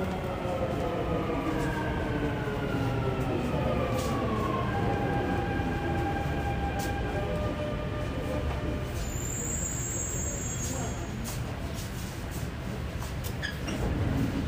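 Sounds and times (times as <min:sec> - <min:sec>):
metro train rumbling on rails: 0:00.0 - 0:14.4
high squeal: 0:09.0 - 0:11.2.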